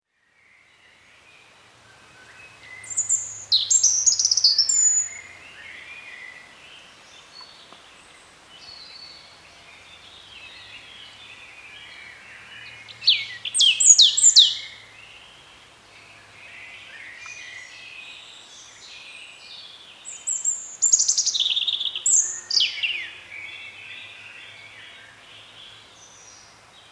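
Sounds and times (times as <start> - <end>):
European robin singing: 0.5 - 26.8.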